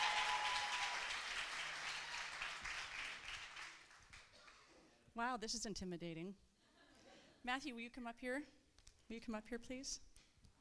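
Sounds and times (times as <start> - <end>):
audience hand clapping: 0.0 - 4.7
speech: 5.2 - 6.5, 7.4 - 10.1.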